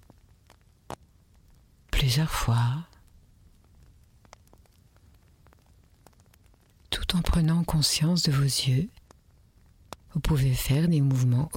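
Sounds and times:
wood fire crackling: 0.0s - 11.5s
speech: 2.0s - 2.9s, 7.1s - 9.0s, 10.2s - 11.5s.

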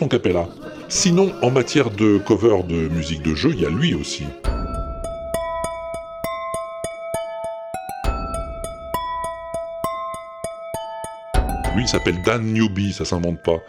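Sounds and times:
speech: 0.0s - 4.6s, 11.8s - 13.6s
wine glasses tapped with small sticks playing a tune: 4.5s - 13.4s.

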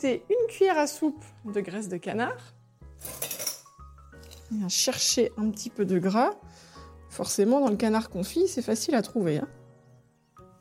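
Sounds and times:
speech: 0.0s - 3.3s, 4.5s - 9.6s
heavy cooking pot clinking and scraping as it is handled: 3.0s - 3.8s.

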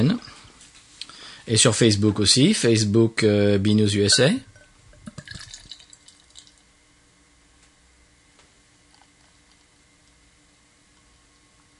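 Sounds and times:
speech: 0.0s - 0.3s, 1.5s - 4.5s
beer being poured: 4.1s - 6.7s, 8.8s - 9.9s.

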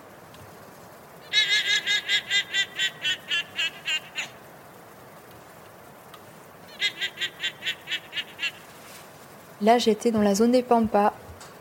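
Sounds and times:
guanaco herd bleating calls echoing in the Pampas: 1.2s - 4.5s, 6.6s - 8.9s
speech: 9.6s - 11.2s.

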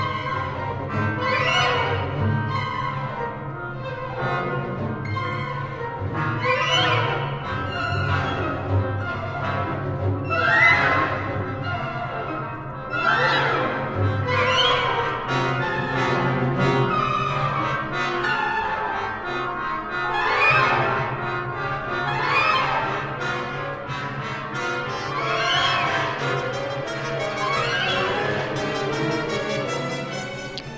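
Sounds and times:
group of muted trombones in an orchestra: 0.0s - 30.7s.

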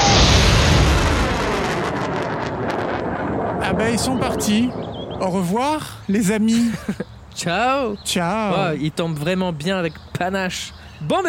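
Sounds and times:
lit firework rocket exploding with a rumbling boom: 0.0s - 5.3s
speech: 3.8s - 11.2s
laughter: 6.3s - 7.1s.

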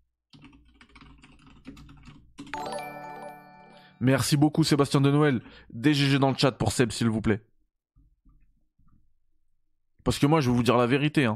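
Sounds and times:
typing on a computer keyboard: 0.3s - 2.8s
bright ringing chime: 2.6s - 4.1s
speech: 4.0s - 7.5s, 10.0s - 11.3s.

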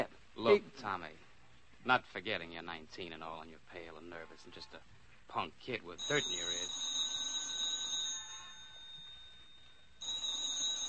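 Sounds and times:
speech: 0.0s - 1.2s, 1.8s - 6.9s
telephone ringing with high-pitched electric bell trill: 6.0s - 10.8s.

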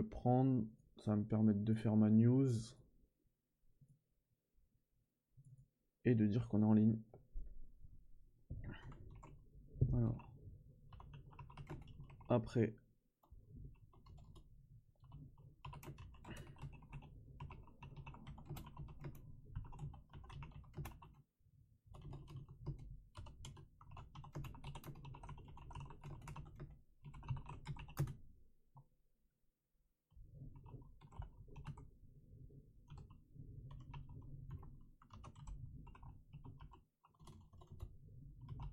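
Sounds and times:
speech: 0.0s - 2.8s, 6.0s - 7.2s, 9.8s - 10.3s, 12.3s - 12.8s
typing on a computer keyboard: 8.7s - 9.4s, 10.0s - 12.3s, 13.7s - 21.2s, 21.9s - 28.2s, 30.4s - 31.9s, 32.8s - 38.7s.

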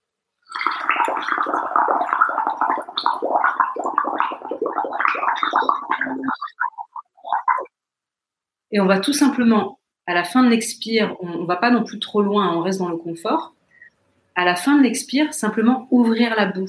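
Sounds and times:
air blown through water bubbling: 0.5s - 7.7s
speech: 8.7s - 13.6s, 14.4s - 16.6s.

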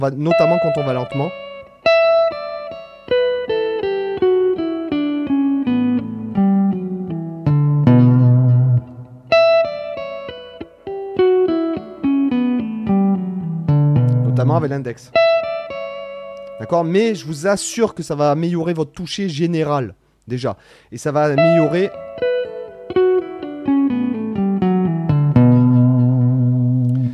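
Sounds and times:
speech: 0.0s - 1.4s, 14.6s - 15.4s, 16.6s - 22.0s
clean electric guitar playing fast legato runs of tapped notes: 0.3s - 17.4s, 21.4s - 27.1s.

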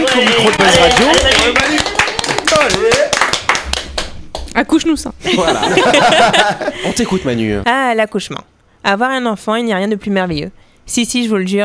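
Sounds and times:
voices calling out and cheering: 0.0s - 3.0s
studio hosts clapping: 0.0s - 4.6s
speech: 0.2s - 1.6s, 4.6s - 11.6s
laughter: 5.2s - 7.2s.

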